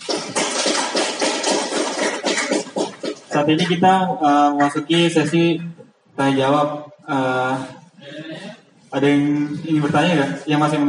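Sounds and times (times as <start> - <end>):
crowd clapping: 0.0 - 3.5
speech: 3.4 - 10.8.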